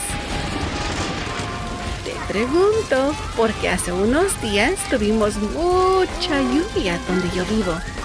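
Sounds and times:
thunder crash: 0.0 - 8.0
speech: 2.3 - 8.0.

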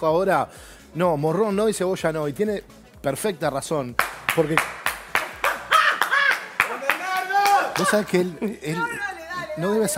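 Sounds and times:
speech: 0.0 - 4.8, 7.8 - 9.9
single person clapping hands: 4.0 - 8.1.

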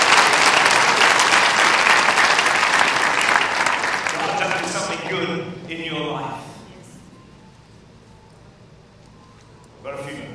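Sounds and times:
audience clapping: 0.0 - 5.3.

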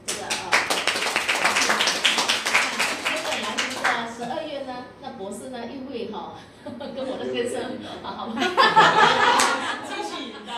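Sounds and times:
audience clapping: 0.0 - 4.1, 9.3 - 9.7
laughter: 8.3 - 10.5.

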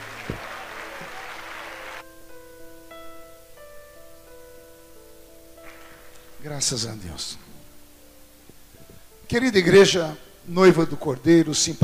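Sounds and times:
audience applauding in church: 0.0 - 2.0
speech: 6.4 - 7.5, 9.3 - 11.8.

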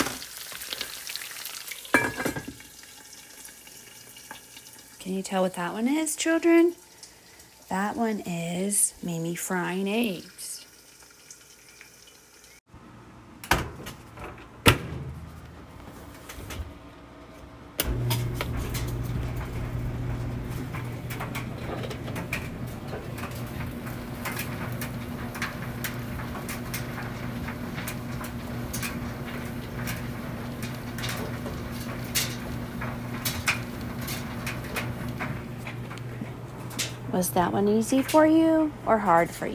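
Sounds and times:
speech: 5.0 - 6.8, 7.7 - 10.4, 37.2 - 39.5
clothes dryer being started: 13.5 - 39.5.

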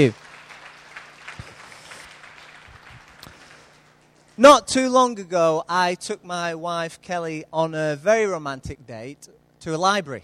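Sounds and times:
speech: 0.0 - 0.2, 4.4 - 10.2
audience applause: 0.0 - 4.1.

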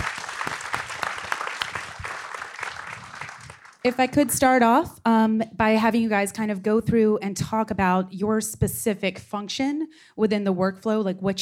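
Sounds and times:
crowd applauding: 0.0 - 4.2
speech: 3.8 - 11.3.

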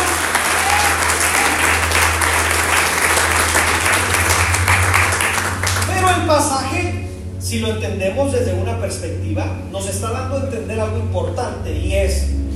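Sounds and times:
audience applause: 0.0 - 6.2
speech: 7.6 - 12.5.

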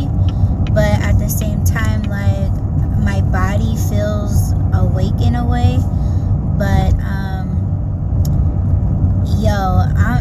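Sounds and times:
car engine rumble and road noise inside a car on a food-delivery drive: 0.0 - 10.1.

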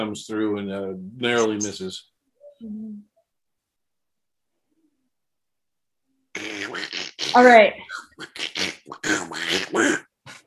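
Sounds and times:
speech: 0.0 - 3.1, 7.3 - 10.1
person imitating gross duck noises: 0.8 - 1.8, 6.4 - 10.4.

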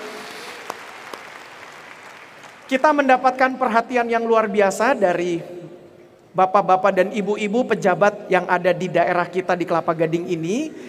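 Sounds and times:
audience applause: 0.0 - 2.7
speech: 2.7 - 5.6, 6.3 - 10.8.

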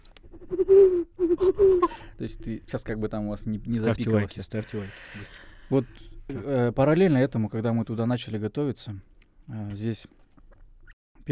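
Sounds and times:
voice imitating a bird call with hooting coos: 0.3 - 2.1
speech: 1.5 - 10.2.

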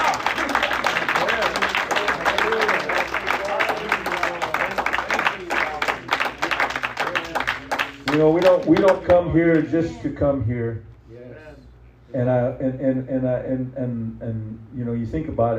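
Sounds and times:
audience giving a hand clap: 0.0 - 9.7
speech: 8.2 - 10.9, 12.1 - 15.5.

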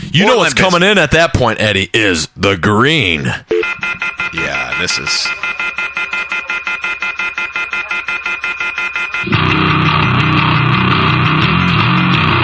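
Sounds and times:
speech: 0.1 - 3.5, 4.3 - 5.4, 9.2 - 9.5
telephone off-the-hook pulsing beeps: 3.5 - 12.1
telephone off-the-hook harsh continuous blaring tone: 3.6 - 12.4.

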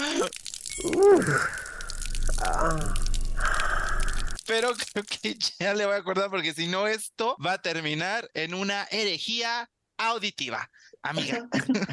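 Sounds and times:
drawn-out vocal groan or sigh: 0.0 - 4.4
urination trickle sound effect: 0.0 - 5.4
speech: 0.2 - 1.6, 2.6 - 3.0, 4.5 - 11.9
laughter: 11.2 - 11.9.

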